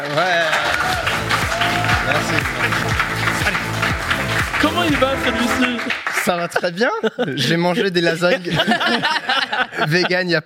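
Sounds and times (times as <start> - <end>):
speech: 0.0 - 0.4, 4.8 - 10.4
audience applause: 0.0 - 6.8
rhythmic musical jingle with sliding low tones: 1.0 - 6.1
laughter: 1.5 - 3.7, 6.2 - 10.4.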